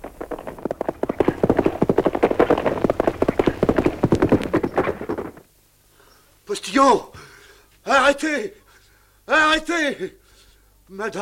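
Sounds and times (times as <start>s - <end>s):
horses' hooves galloping in pursuit: 0.0s - 5.5s
speech: 6.8s - 7.1s, 7.9s - 8.6s, 9.3s - 10.2s, 10.9s - 11.2s.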